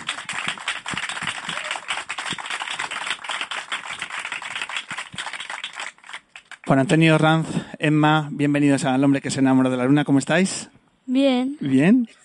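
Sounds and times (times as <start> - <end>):
audience applause: 0.0 - 6.8
speech: 6.7 - 12.2.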